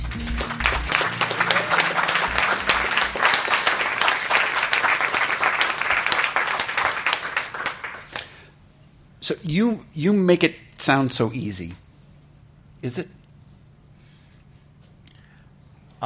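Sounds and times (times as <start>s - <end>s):
low tonal hum: 0.0s - 4.1s
audience applause: 0.0s - 8.4s
speech: 9.3s - 11.8s, 12.8s - 13.2s.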